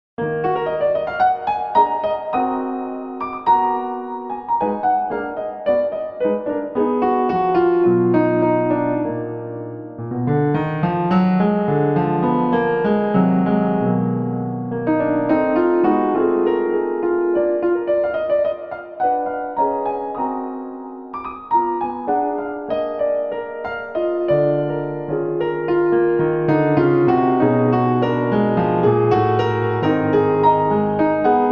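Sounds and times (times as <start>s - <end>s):
piano improvisation: 0.2s - 31.5s.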